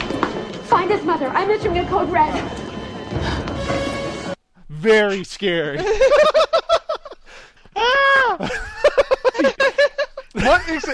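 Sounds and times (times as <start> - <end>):
speech: 0.7 - 3.4, 4.8 - 6.5, 10.4 - 10.9
laughter: 5.8 - 10.9
woman screaming: 7.8 - 8.5.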